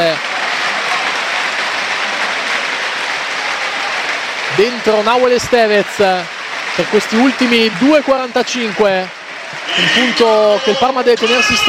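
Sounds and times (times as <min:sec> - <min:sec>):
stadium crowd applause: 0:00.0 - 0:11.6
speech: 0:04.6 - 0:11.6.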